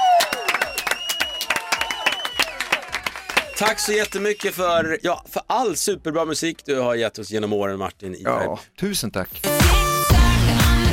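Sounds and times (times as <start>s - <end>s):
applause: 0.0s - 4.6s
speech: 3.6s - 9.8s.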